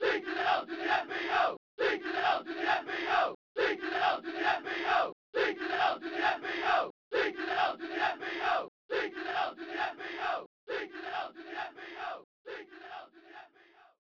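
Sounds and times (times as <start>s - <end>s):
chanting: 0.0s - 13.9s.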